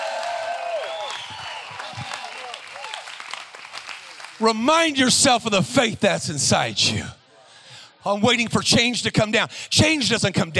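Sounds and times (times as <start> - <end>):
audience shouting: 0.0 - 3.0
audience clapping: 0.0 - 5.0
speech: 4.4 - 7.2, 8.0 - 10.5.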